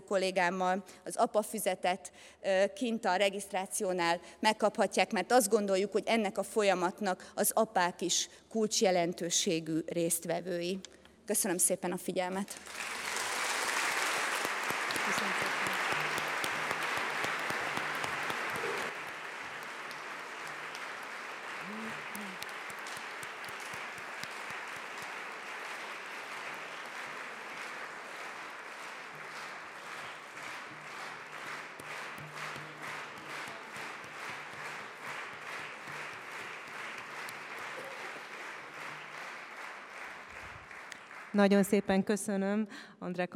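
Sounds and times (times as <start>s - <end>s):
speech: 0.1s - 13.0s, 15.1s - 15.6s, 41.4s - 43.3s
audience applause after a lecture: 12.6s - 41.4s.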